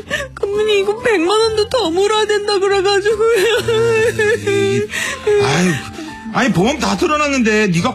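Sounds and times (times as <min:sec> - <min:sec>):
speech: 0:00.0 - 0:07.9
person crying: 0:03.4 - 0:05.8.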